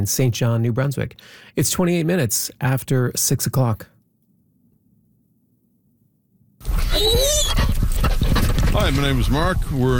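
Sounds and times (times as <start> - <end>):
speech: 0.0 - 3.9, 8.7 - 9.9
dog whimpering and growling: 6.7 - 8.4.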